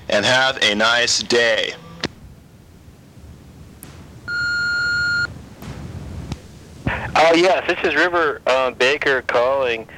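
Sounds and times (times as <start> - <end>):
speech: 0.1 - 1.9, 7.2 - 9.9
faint line noise: 1.3 - 9.6
answering machine beep tone: 4.3 - 5.3.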